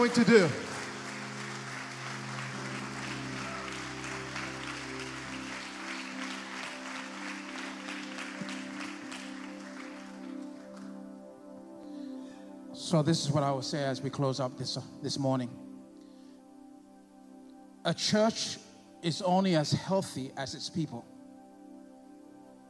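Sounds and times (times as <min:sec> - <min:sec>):
speech: 0:00.0 - 0:00.7, 0:12.9 - 0:15.6, 0:17.8 - 0:21.1
audience clapping: 0:00.0 - 0:11.0.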